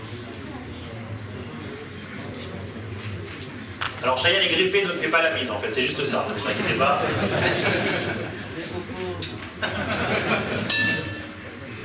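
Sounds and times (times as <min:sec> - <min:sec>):
speech: 0:04.0 - 0:08.2
laughter: 0:06.4 - 0:08.9, 0:09.5 - 0:10.8
bell ringing: 0:10.7 - 0:11.5.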